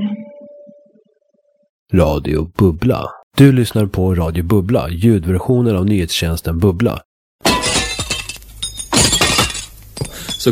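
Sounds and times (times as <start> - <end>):
speech: 1.9 - 7.1
glass shards clinking: 7.4 - 10.4
glass window pane shattering: 7.4 - 10.4.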